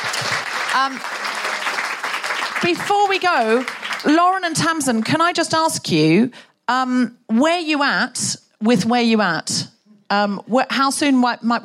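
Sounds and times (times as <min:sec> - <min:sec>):
audience applause for a panelist at the end of a talk: 0:00.0 - 0:04.2
speech: 0:00.7 - 0:01.4, 0:02.6 - 0:11.6.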